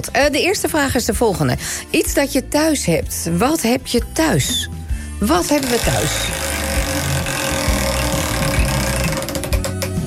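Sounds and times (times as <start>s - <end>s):
speech: 0.0s - 6.5s
vacuum cleaner running: 5.4s - 9.3s.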